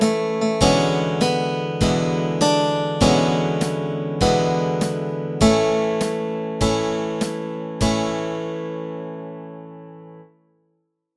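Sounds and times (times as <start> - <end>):
guitar and ukulele playing melody and chords: 0.0 - 8.2.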